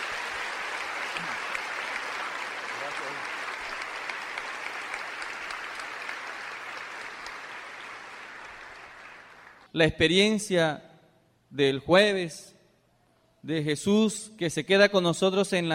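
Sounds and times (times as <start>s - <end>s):
audience applauding: 0.0s - 9.7s
speech: 9.8s - 10.9s, 11.5s - 12.6s, 13.4s - 15.7s.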